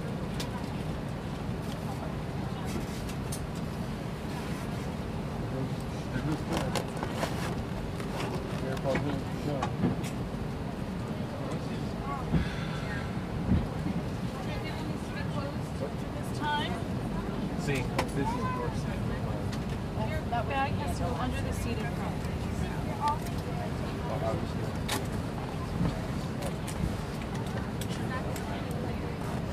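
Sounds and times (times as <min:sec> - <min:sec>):
airplane cabin noise during a flight: 0:00.0 - 0:29.5.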